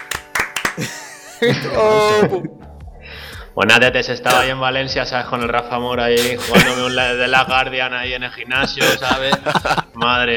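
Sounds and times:
audience clapping: 0.0 - 1.1
laughter: 0.8 - 2.6, 6.2 - 7.8, 8.5 - 10.1
speech: 0.8 - 10.3.

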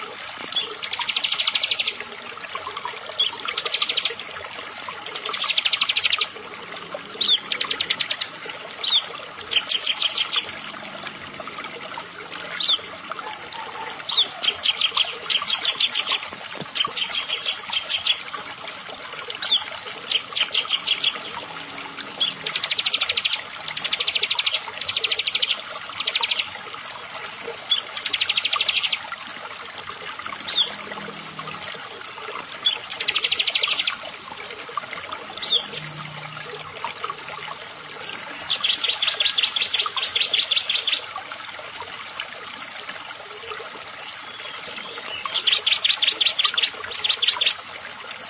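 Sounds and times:
bar-winged prinia singing: 0.0 - 2.1, 3.1 - 4.2, 5.1 - 10.8, 11.9 - 18.4, 19.3 - 26.5, 27.6 - 29.0, 30.4 - 31.6, 32.5 - 41.1, 44.1 - 47.6.

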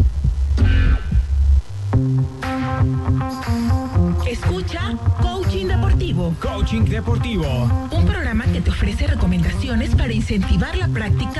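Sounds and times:
heartbeat thumps: 0.0 - 3.3, 3.9 - 11.3
speech: 6.3 - 11.3.

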